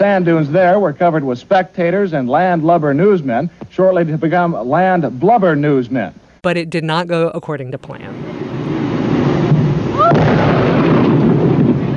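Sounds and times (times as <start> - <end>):
speech: 0.0 - 8.4
dynamite explosion blowing up a whale carcass: 8.2 - 11.9.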